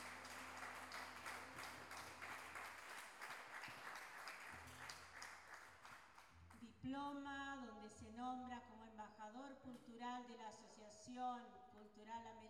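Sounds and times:
sustained audience applause: 0.0 - 6.3
speech: 6.8 - 12.4.

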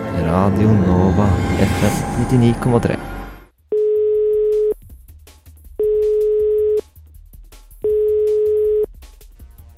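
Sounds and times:
speech: 0.2 - 3.2
telephone ringback tone: 3.7 - 4.7, 5.8 - 6.9, 7.9 - 8.9.

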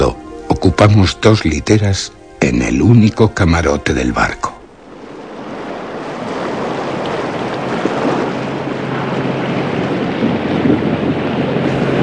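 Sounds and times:
choppy sea waves around a sailing ship crossing the Great Belt: 0.0 - 12.0
speech: 0.1 - 4.5
strong wind around a sailing ship crossing the Great Belt at night: 4.8 - 12.0.

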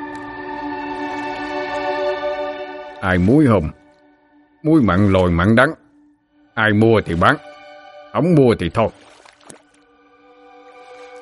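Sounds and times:
oar paddling water of a muddy canal: 0.0 - 4.0, 6.7 - 7.4, 8.2 - 11.2
old man with a long beard speaking gruffly: 3.0 - 3.8, 4.7 - 5.8, 6.6 - 7.4, 8.2 - 8.9
speech: 3.0 - 3.8, 4.6 - 5.8, 6.6 - 7.5, 8.1 - 9.0.

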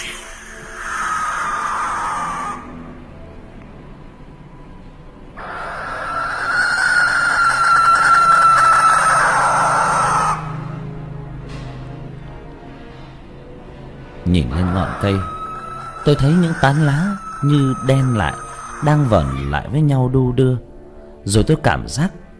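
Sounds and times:
barn owl screech: 0.0 - 3.0, 5.4 - 10.9, 14.3 - 20.1
speech: 14.6 - 15.3, 16.0 - 22.2.

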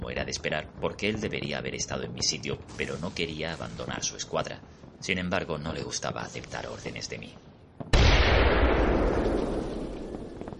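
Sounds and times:
speech: 0.1 - 7.5
warehouse bomb explosion: 7.8 - 10.5.

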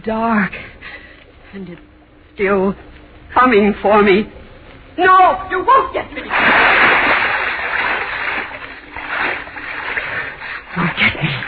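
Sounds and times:
speech: 0.0 - 0.7, 1.5 - 4.4, 5.0 - 6.8
person swimming in a dark river: 6.3 - 11.4.

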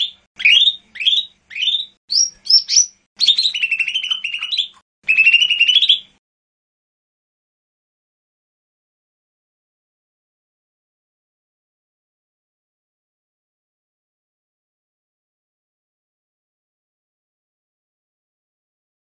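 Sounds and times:
bird song of short bright whistled phrases and rasping buzzy bursts: 0.0 - 6.2.

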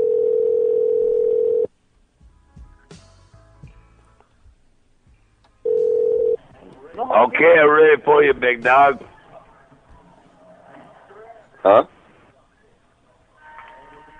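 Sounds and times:
telephone tone while call is patched through: 0.0 - 1.7, 5.7 - 6.4
speech: 7.2 - 9.1, 11.6 - 12.0.

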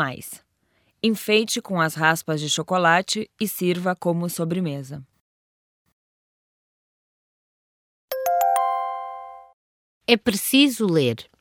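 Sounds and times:
speech: 0.0 - 0.4, 1.0 - 5.1, 10.1 - 11.3
school bell ringing for dismissal: 8.1 - 9.5.

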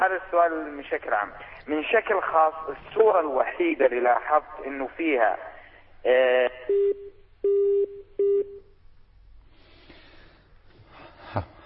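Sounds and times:
speech: 0.0 - 8.6, 11.3 - 11.5
telephone tones from a call being placed to Jordan: 6.7 - 8.6.

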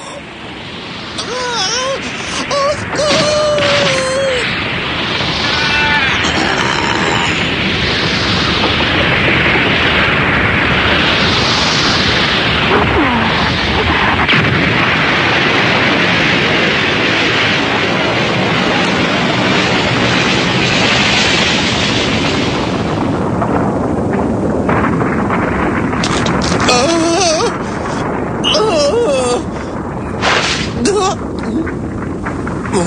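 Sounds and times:
bomb explosion rumble: 0.0 - 32.8
high squeals: 5.3 - 6.6.

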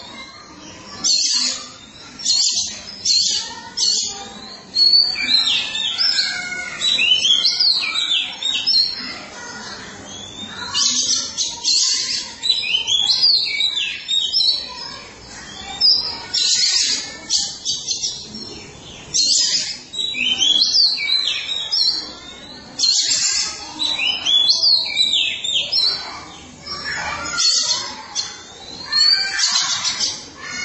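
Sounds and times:
Oriental magpie-robin song: 0.0 - 30.6.

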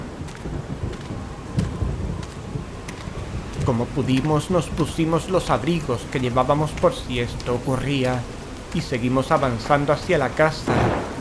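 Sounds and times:
heavy rain: 0.0 - 11.2
thunder rumbling: 0.0 - 11.2
speech: 3.7 - 11.0.

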